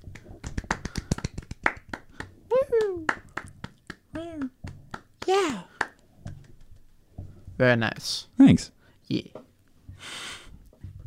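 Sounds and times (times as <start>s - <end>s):
polite clapping: 0.0s - 6.9s
speech: 7.6s - 9.4s.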